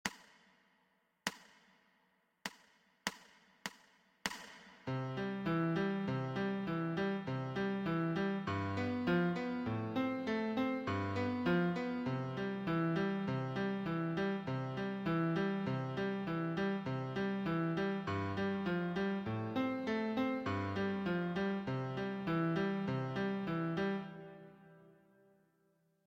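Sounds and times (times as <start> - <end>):
B-flat accompaniment music: 4.9 - 24.7.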